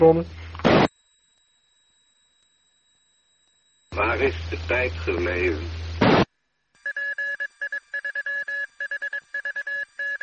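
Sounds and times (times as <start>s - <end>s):
speech: 0.0s - 0.4s, 4.2s - 6.0s
static burst: 0.4s - 0.9s, 3.9s - 6.4s
radio repeater electronic beeps: 3.4s - 5.9s, 6.8s - 10.2s.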